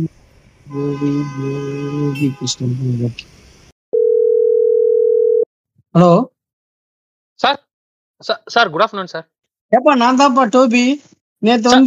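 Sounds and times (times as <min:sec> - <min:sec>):
speech: 0:00.0 - 0:03.4, 0:06.0 - 0:06.3, 0:07.4 - 0:07.6, 0:08.2 - 0:11.8
telephone call tone while phoning a shop: 0:04.0 - 0:05.5.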